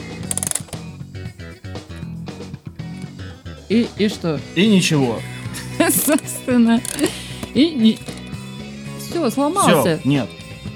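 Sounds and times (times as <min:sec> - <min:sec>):
mechanical alarm clock being wound: 0:00.0 - 0:00.8, 0:06.0 - 0:07.2, 0:07.9 - 0:08.3
speech: 0:03.7 - 0:05.3, 0:05.9 - 0:08.1, 0:09.2 - 0:10.4
laughter: 0:05.0 - 0:06.4.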